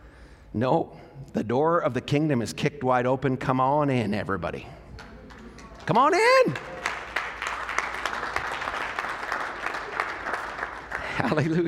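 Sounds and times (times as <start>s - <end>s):
speech: 0.6s - 4.8s, 5.9s - 6.8s, 11.2s - 11.6s
audience clapping: 5.0s - 11.6s.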